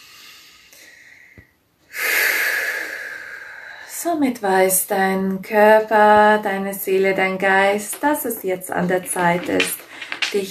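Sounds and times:
deep exhalation during a guided relaxation exercise: 0.0s - 3.9s
speech: 4.0s - 10.4s.

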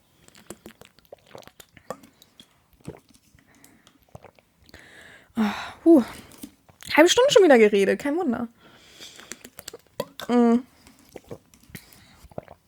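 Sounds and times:
person sipping a drink with a wet slurp and swallow: 0.2s - 4.8s, 9.1s - 12.6s
speech: 5.4s - 6.3s, 7.0s - 8.6s, 10.3s - 10.7s.

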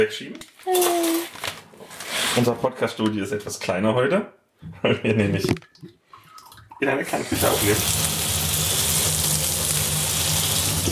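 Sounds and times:
speech: 0.0s - 1.1s, 2.3s - 6.0s, 6.8s - 8.1s
running tap water: 6.4s - 10.8s.

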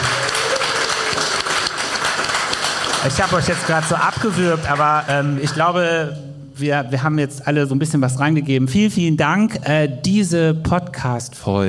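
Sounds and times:
crowd applauding: 0.0s - 5.8s
speech: 3.0s - 11.6s.

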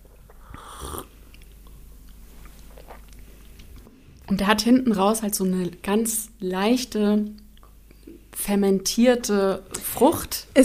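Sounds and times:
quiet sipping of coffee: 0.1s - 3.9s
people slurping while tasting coffee: 0.2s - 1.1s
speech: 4.3s - 7.4s, 8.4s - 10.6s.

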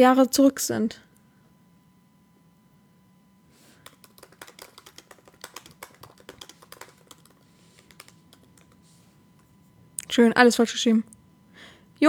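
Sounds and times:
speech: 0.0s - 1.1s, 10.2s - 11.2s
computer keyboard typing a search query: 3.8s - 9.5s.

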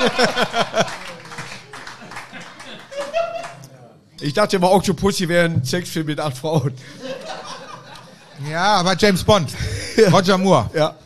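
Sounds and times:
speech: 0.0s - 0.8s, 4.2s - 7.2s, 8.4s - 11.0s
applause: 0.0s - 3.6s
laughter: 0.0s - 3.7s, 6.6s - 10.2s.

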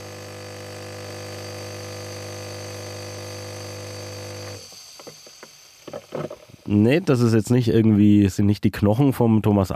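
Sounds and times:
coffee machine running: 0.0s - 6.5s
speech: 6.7s - 9.7s.

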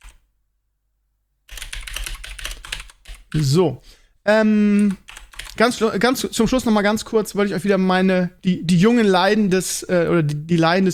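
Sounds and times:
computer keyboard typing as a note is added to a list: 0.0s - 0.2s, 1.5s - 3.4s, 4.8s - 5.7s
speech: 3.3s - 5.0s, 5.6s - 10.9s.

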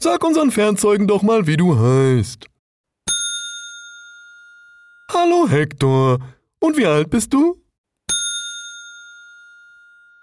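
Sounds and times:
speech: 0.0s - 2.5s, 5.1s - 7.6s
bell ringing: 3.1s - 5.2s, 8.1s - 10.2s.

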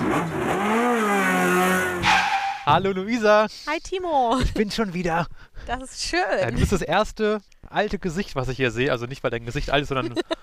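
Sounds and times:
Porsche service car engine humming while driving off: 0.0s - 2.7s
speech: 2.7s - 10.4s
laughter: 10.0s - 10.4s.

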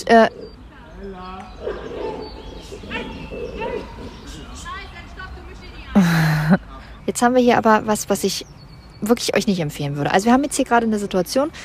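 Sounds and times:
speech: 0.1s - 0.4s, 6.5s - 11.6s
white-and-black dog yipping and whimpering greeting people it knows: 1.6s - 4.3s.

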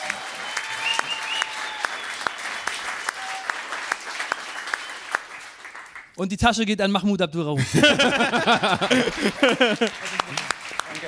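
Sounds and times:
applause: 0.0s - 6.2s, 8.4s - 11.0s
speech: 6.2s - 10.5s
laughter: 7.6s - 11.0s.

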